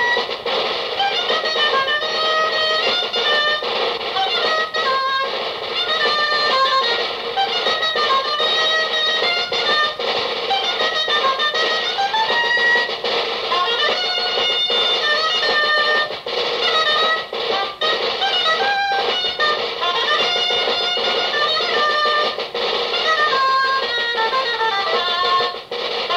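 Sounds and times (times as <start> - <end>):
traditional corrido dance music from Valladolid: 0.0 - 26.1.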